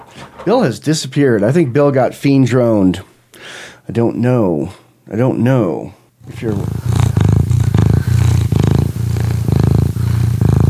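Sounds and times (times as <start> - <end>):
speech: 0.4 - 7.0
pet cat purring: 6.2 - 10.6.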